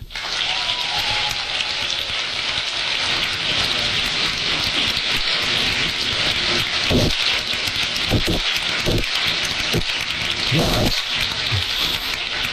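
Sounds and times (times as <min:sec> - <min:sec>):
concert audience applause: 0:00.0 - 0:12.5.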